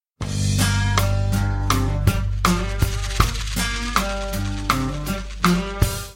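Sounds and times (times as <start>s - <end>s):
funk blues music: 0.2s - 6.1s.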